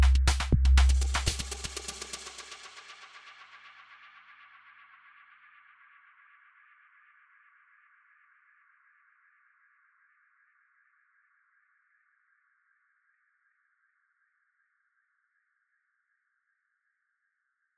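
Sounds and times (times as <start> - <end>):
electronic music jam: 0.0 - 2.6.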